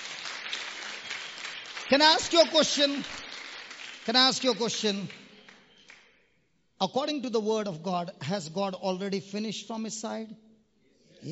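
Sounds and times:
audience clapping: 0:00.0 - 0:06.1
speech: 0:01.9 - 0:03.2, 0:04.0 - 0:05.2, 0:06.8 - 0:10.5.

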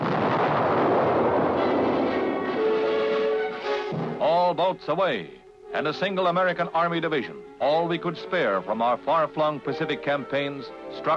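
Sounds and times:
United States fleet naval gun bombardment: 0:00.0 - 0:04.4
speech: 0:04.5 - 0:11.1.

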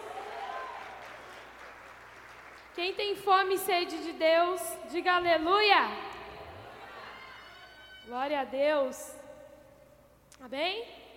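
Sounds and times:
audience applause: 0:00.0 - 0:02.8
speech: 0:02.8 - 0:06.1, 0:08.1 - 0:09.2, 0:10.4 - 0:11.0.

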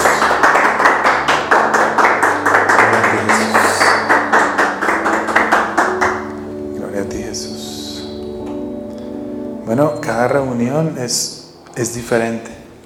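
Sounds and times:
audience applause: 0:00.0 - 0:06.4
speech: 0:09.7 - 0:12.5.

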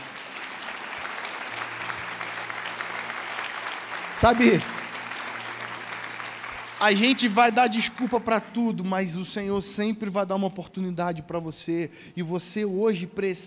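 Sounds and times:
audience applauding: 0:00.0 - 0:08.8
speech: 0:04.2 - 0:04.8, 0:06.8 - 0:13.4.

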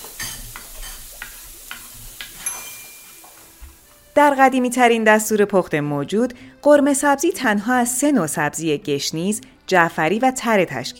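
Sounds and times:
stirring meat and onions: 0:00.0 - 0:02.4
meat and onions frying in oil: 0:00.0 - 0:04.0
speech: 0:04.2 - 0:10.9.

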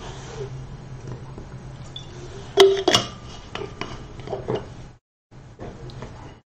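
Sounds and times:
glass and dishes clinking: 0:02.0 - 0:04.7.

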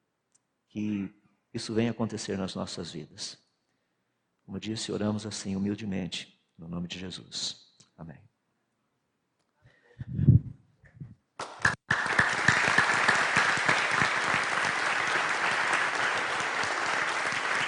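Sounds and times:
speech: 0:00.7 - 0:03.4, 0:04.5 - 0:08.3
audience applause: 0:11.4 - 0:17.6.

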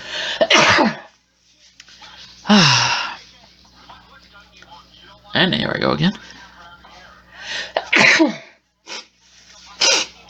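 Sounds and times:
sneeze away from the microphone: 0:00.4 - 0:01.1, 0:07.9 - 0:09.1, 0:09.8 - 0:10.2
speech: 0:00.8 - 0:01.0, 0:02.5 - 0:03.0, 0:05.4 - 0:06.4, 0:08.2 - 0:08.4.

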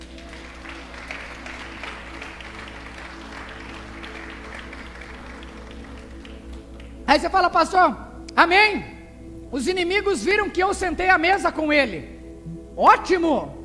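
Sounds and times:
audience applauding: 0:00.0 - 0:07.0
speech: 0:07.1 - 0:08.9, 0:09.5 - 0:12.1, 0:12.8 - 0:13.5.

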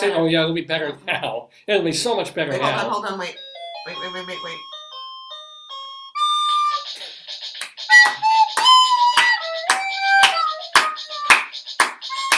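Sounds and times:
speech: 0:00.0 - 0:04.8
recorder flute being played: 0:02.6 - 0:12.3.

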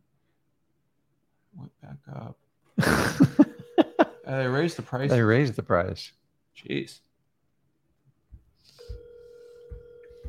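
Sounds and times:
speech: 0:01.8 - 0:03.5, 0:04.3 - 0:07.1
laughter: 0:02.8 - 0:04.3
telephone ringing unanswered: 0:03.2 - 0:05.3, 0:08.7 - 0:10.2.

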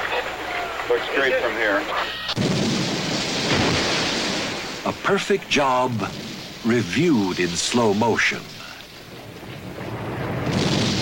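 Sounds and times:
speech: 0:00.9 - 0:02.6, 0:04.8 - 0:08.6
controlled demolition building implosion collapse: 0:02.4 - 0:11.0.

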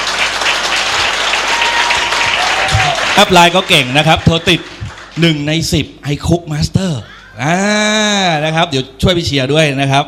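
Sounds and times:
loud sustained crowd applause: 0:00.0 - 0:05.5
speech: 0:03.2 - 0:10.0.

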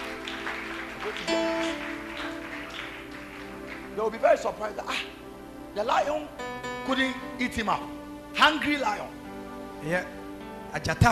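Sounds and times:
audience clapping hands: 0:00.0 - 0:04.6
speech: 0:01.1 - 0:02.0, 0:04.0 - 0:05.2, 0:05.8 - 0:09.2, 0:09.8 - 0:11.1.

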